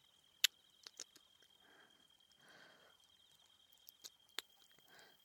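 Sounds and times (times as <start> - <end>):
ASMR ear licking in the right ear: 0.4 - 1.3, 3.8 - 5.0.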